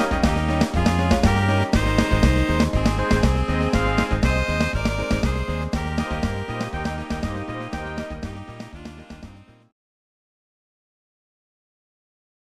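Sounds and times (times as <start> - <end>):
samba music: 0.0 - 9.7.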